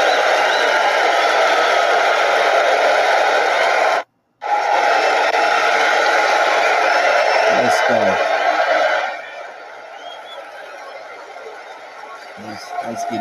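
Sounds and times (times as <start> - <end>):
round of applause: 0.0 - 13.1.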